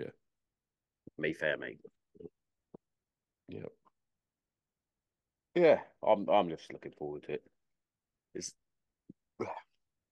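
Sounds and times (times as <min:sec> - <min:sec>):
speech: 0:00.0 - 0:00.2, 0:01.2 - 0:02.4, 0:03.5 - 0:03.8, 0:05.6 - 0:07.6, 0:08.4 - 0:08.6, 0:09.4 - 0:09.7
person burping: 0:09.4 - 0:09.8.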